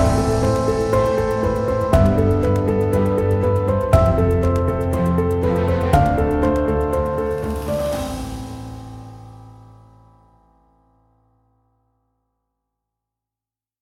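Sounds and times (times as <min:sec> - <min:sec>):
epic dramatic music: 0:00.0 - 0:10.0.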